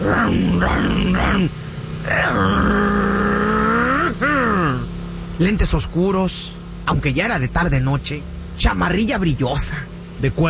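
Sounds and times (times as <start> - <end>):
voice imitating motorcycle revving: 0.0 - 8.1
speech: 5.4 - 10.4.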